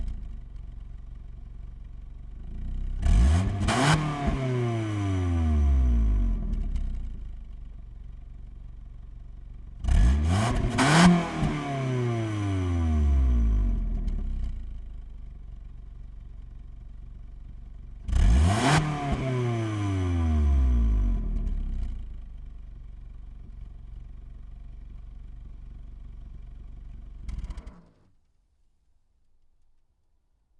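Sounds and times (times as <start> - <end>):
Ford Probe engine starting, idling, revving and shutting off, exterior: 2.6 - 7.4, 9.8 - 14.7, 18.0 - 22.3.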